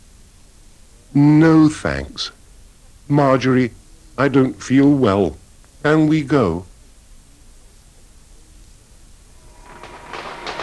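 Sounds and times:
speech: 0:01.1 - 0:02.4, 0:03.1 - 0:06.7
fireworks bursting on Bonfire Night: 0:09.4 - 0:10.6.

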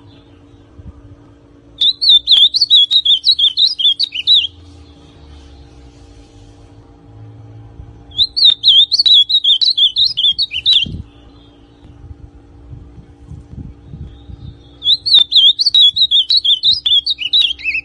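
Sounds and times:
ultramarine grosbeak song: 0:01.8 - 0:05.6, 0:08.1 - 0:12.0, 0:13.8 - 0:17.8.

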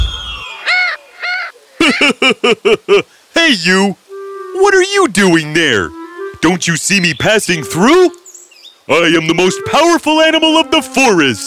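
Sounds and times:
parrot squawking in a tree in a forest: 0:00.0 - 0:01.6
laughter: 0:01.8 - 0:03.0
speech: 0:02.3 - 0:04.0, 0:04.6 - 0:08.2, 0:08.9 - 0:11.4.

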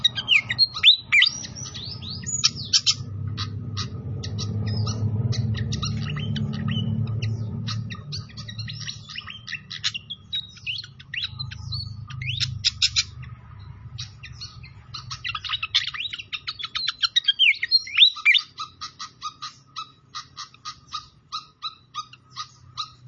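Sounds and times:
Pied fantail singing: 0:00.0 - 0:23.0
low rumbling background: 0:01.3 - 0:16.6.

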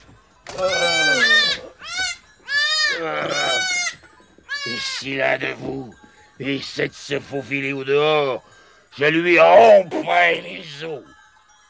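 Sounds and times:
sheep bleating: 0:00.5 - 0:05.6
speech: 0:00.6 - 0:00.8, 0:04.8 - 0:11.2.

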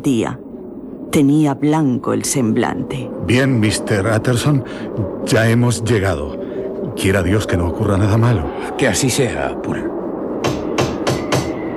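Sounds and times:
speech: 0:00.0 - 0:00.4, 0:01.1 - 0:06.4, 0:07.0 - 0:09.9
soft cautious knocks on a wooden door: 0:10.4 - 0:11.6.

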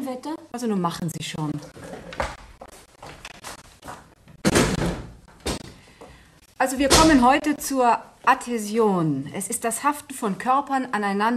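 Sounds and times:
speech: 0:00.1 - 0:02.0, 0:06.6 - 0:11.3
classroom windows being shut with thuds and bangs: 0:04.3 - 0:05.8, 0:06.8 - 0:07.4.

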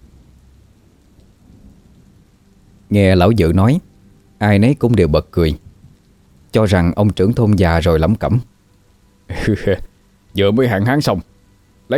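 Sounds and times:
heavy rain: 0:00.0 - 0:11.9
thunder: 0:01.4 - 0:02.1
speech: 0:02.9 - 0:05.6, 0:06.5 - 0:08.5, 0:09.3 - 0:11.3.

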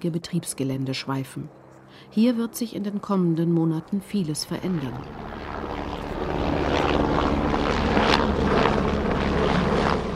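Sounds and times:
speech: 0:00.0 - 0:05.5
helicopter at the Eurocopter heliport in Ottobrunn: 0:00.2 - 0:10.1.

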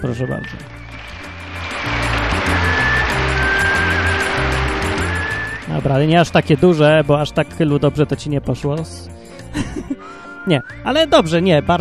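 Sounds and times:
speech: 0:00.0 - 0:00.8, 0:05.7 - 0:11.7
applause: 0:00.9 - 0:05.6
laughter: 0:09.5 - 0:10.0.

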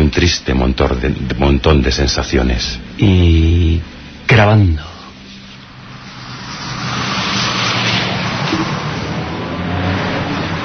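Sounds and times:
speech: 0:00.2 - 0:04.9
traffic of hundreds of cars: 0:05.0 - 0:10.6.

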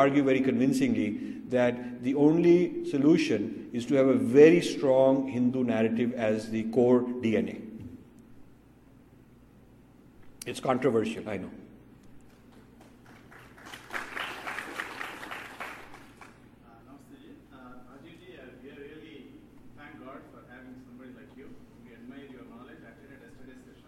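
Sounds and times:
speech: 0:00.0 - 0:07.7, 0:10.4 - 0:11.6
low steady hum: 0:00.0 - 0:23.8
crowd clapping and cheering: 0:12.3 - 0:16.4.

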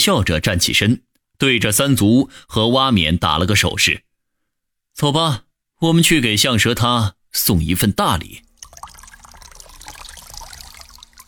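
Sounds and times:
speech: 0:00.0 - 0:04.1, 0:05.0 - 0:08.5
water gurgling and trickling over a pool: 0:08.3 - 0:11.2.

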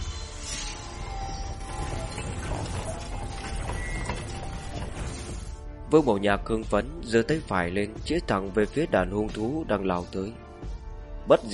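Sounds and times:
deafening rumbling of a giant fortress machine: 0:00.0 - 0:05.7
speech: 0:05.9 - 0:10.4, 0:11.2 - 0:11.5.

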